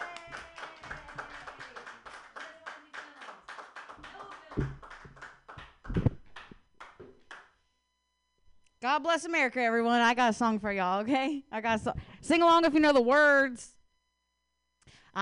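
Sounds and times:
open-mic comedy audience clapping to welcome a comedian: 0.0 - 7.6
speech: 4.6 - 4.8, 8.8 - 13.7.

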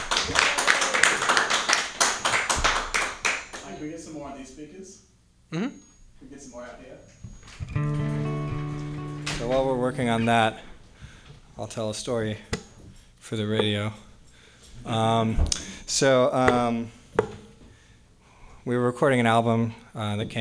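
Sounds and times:
audience round of applause: 0.0 - 3.7
speech: 3.8 - 8.2, 9.4 - 10.7, 11.6 - 12.6, 13.2 - 14.1, 14.8 - 17.0, 18.6 - 20.3.

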